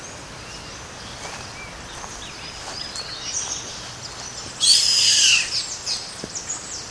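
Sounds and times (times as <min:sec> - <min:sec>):
bird screeching: 0:04.6 - 0:06.0.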